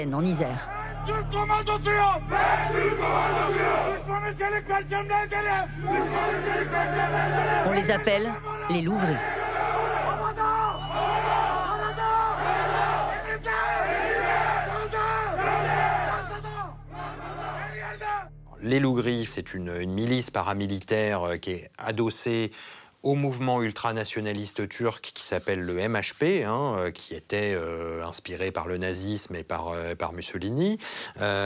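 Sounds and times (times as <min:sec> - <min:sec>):
speech: 0:00.0 - 0:09.4, 0:18.6 - 0:31.4
crowd of young men chanting and shouting in the street: 0:00.7 - 0:18.3.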